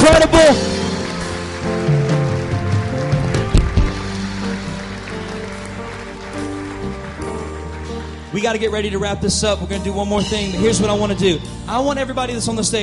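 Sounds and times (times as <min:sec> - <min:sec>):
crowd applause: 0:00.0 - 0:09.0
speech: 0:08.4 - 0:12.8.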